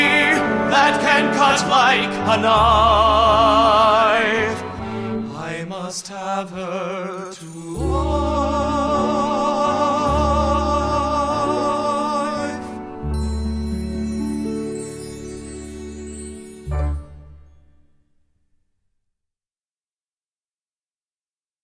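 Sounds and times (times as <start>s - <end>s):
song with vocals: 0.0s - 17.0s.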